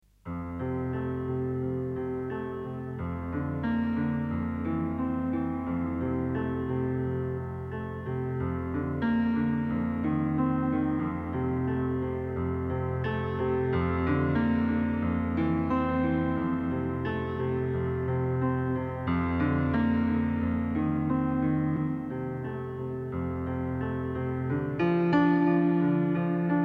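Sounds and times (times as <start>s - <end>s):
piano: 0.0s - 26.6s.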